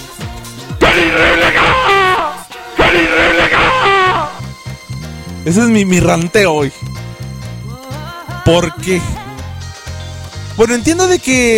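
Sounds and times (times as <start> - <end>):
video game character scream effect: 0.8 - 4.4
speech: 5.5 - 6.9, 8.5 - 9.2, 10.6 - 11.5.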